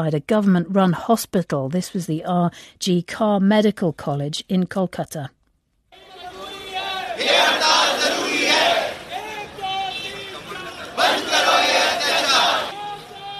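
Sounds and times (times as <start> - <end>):
speech: 0.0 - 5.4
protesters chanting at the junior doctors' strike in Kolkata: 6.0 - 13.3.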